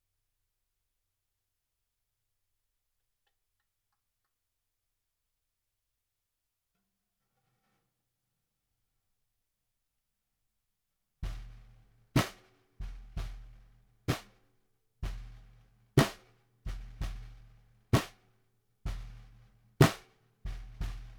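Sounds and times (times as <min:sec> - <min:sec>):
snare drum recorded from the bottom: 0:11.2 - 0:14.4, 0:15.0 - 0:18.2, 0:18.9 - 0:21.1.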